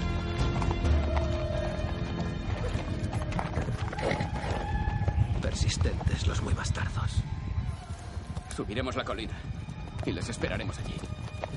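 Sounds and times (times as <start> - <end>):
horses galloping: 0.0 - 11.5
speech: 5.5 - 7.4, 8.6 - 11.1.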